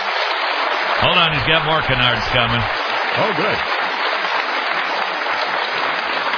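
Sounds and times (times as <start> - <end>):
speech: 1.0 - 3.8
audience applause: 1.0 - 6.3.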